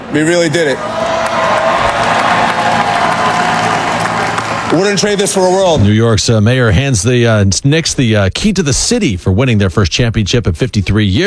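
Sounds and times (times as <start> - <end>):
huge crowd cheering and clapping at a parade: 0.0 - 5.8
speech: 0.1 - 1.1, 4.7 - 11.2.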